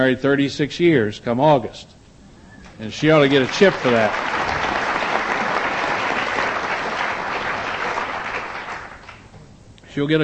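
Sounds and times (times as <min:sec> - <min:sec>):
speech: 0:00.0 - 0:02.0, 0:02.8 - 0:04.4, 0:10.0 - 0:10.2
audience applause: 0:03.0 - 0:09.3.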